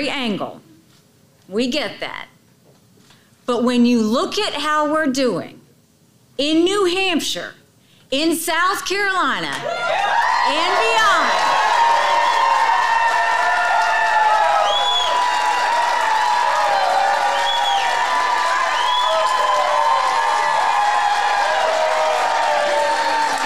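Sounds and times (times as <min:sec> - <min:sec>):
speech: 0:00.0 - 0:00.7, 0:01.5 - 0:02.3, 0:03.5 - 0:05.6, 0:06.4 - 0:09.9, 0:10.5 - 0:11.4
rally crowd cheering: 0:09.6 - 0:23.4.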